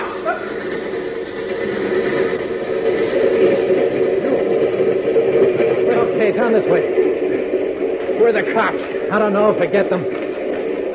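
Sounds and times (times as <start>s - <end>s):
train passing on the tracks: 0.0s - 10.9s
speech: 6.6s - 6.9s, 8.3s - 10.2s.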